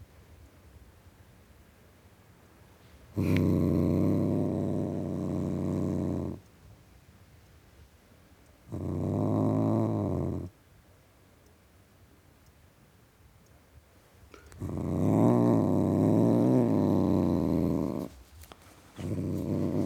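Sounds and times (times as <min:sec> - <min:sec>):
male tom cat growling: 0:03.2 - 0:06.4, 0:08.7 - 0:10.5, 0:14.4 - 0:18.2, 0:19.0 - 0:19.8.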